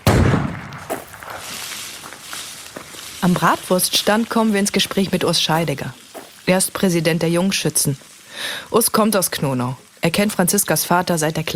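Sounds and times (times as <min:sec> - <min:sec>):
rifle shot at a shooting range fired from a prone position: 0:00.0 - 0:01.1
speech: 0:03.2 - 0:11.5.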